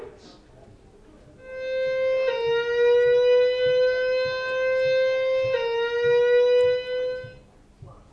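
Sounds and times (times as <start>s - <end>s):
fire alarm test: 1.9s - 7.4s.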